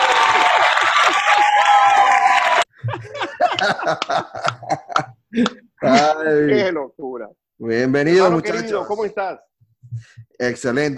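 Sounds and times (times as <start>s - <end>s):
crowd clapping: 0.0s - 2.7s, 3.6s - 4.8s
crowd cheering: 0.0s - 2.8s
laughter: 2.7s - 6.1s
speech: 5.4s - 10.9s.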